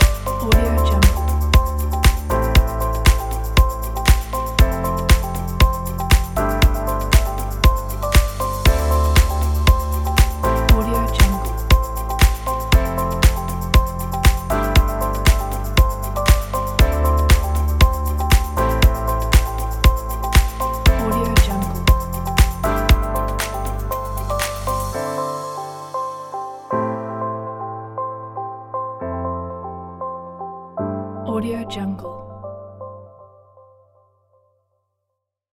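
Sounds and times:
inspiring corporate music: 0.0 - 28.0.

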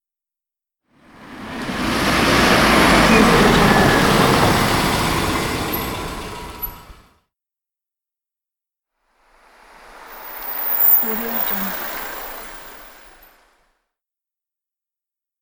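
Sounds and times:
car passing by: 1.0 - 7.1, 9.2 - 13.6.

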